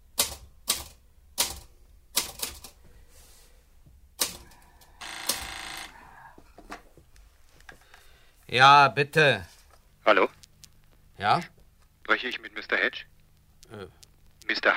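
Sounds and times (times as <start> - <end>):
typewriter typing as a sentence is finished: 0.2 - 2.8, 4.2 - 5.9
speech: 8.5 - 9.5, 10.1 - 10.4, 11.2 - 13.1, 13.7 - 14.7.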